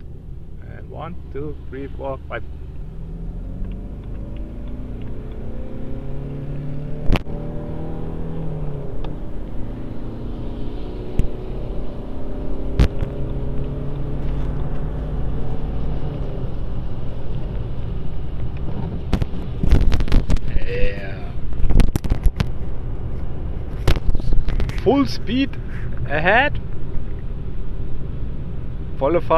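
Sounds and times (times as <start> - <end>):
BMW car accelerating: 0.0 - 29.3
speech: 0.9 - 2.7, 24.9 - 26.6, 29.0 - 29.3
wind rumble: 2.2 - 29.0.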